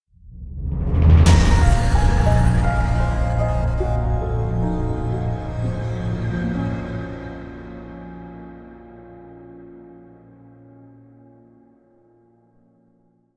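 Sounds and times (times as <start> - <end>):
dark logo sting: 0.4 - 8.4.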